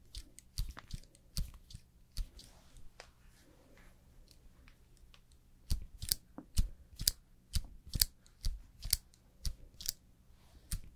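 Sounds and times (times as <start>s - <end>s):
sharp clicks and snips of makeup and hair styling tools: 0.0s - 2.5s, 5.0s - 10.0s, 10.7s - 10.9s.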